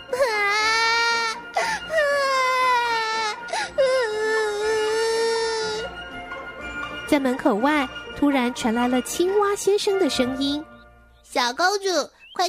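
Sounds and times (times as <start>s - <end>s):
young girl crying: 0.0s - 5.9s
speech: 7.1s - 10.7s, 11.3s - 12.4s.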